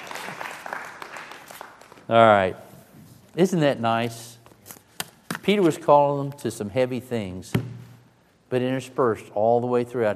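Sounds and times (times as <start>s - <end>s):
audience clapping hands: 0.0s - 2.4s
speech: 2.1s - 2.7s, 3.4s - 4.3s, 5.5s - 7.7s, 8.5s - 10.1s.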